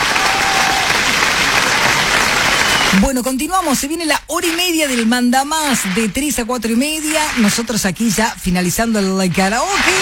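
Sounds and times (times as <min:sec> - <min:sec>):
audience applause for karaoke singers: 0:00.0 - 0:03.0
speech: 0:02.9 - 0:09.9.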